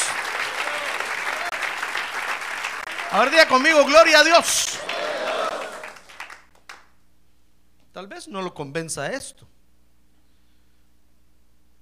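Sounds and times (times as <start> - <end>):
audience applause: 0.0 - 6.8
speech: 3.1 - 4.9, 8.0 - 9.5.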